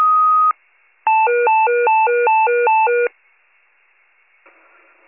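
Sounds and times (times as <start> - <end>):
fire pager alert: 0.2 - 3.1.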